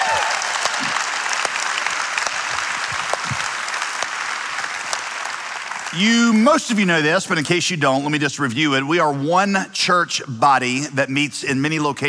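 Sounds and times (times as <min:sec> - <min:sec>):
church congregation applauding to welcome a new campus: 0:00.0 - 0:08.0
speech: 0:05.9 - 0:12.0.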